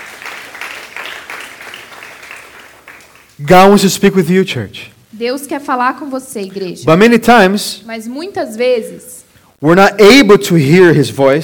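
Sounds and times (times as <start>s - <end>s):
audience clapping hands: 0.0s - 3.9s
speech: 3.4s - 11.4s.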